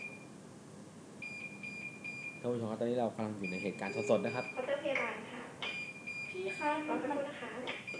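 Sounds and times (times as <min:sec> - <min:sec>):
IV drip machine alarm beeping: 0:00.0 - 0:00.4, 0:01.2 - 0:02.5, 0:03.4 - 0:04.8, 0:05.6 - 0:07.9
speech: 0:02.4 - 0:05.4, 0:06.3 - 0:07.9.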